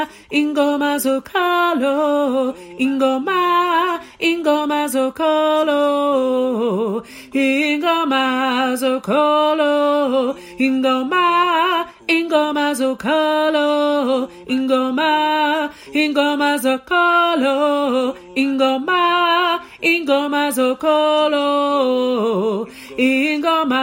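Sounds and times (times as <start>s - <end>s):
gospel choir singing, alto voices: 0.0s - 23.8s.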